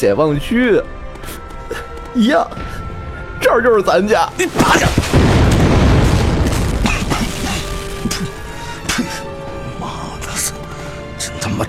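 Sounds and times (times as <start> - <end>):
speech: 0.0 - 1.4, 2.1 - 2.8, 3.4 - 5.4
tank firing in a wartime drama scene: 4.6 - 8.1.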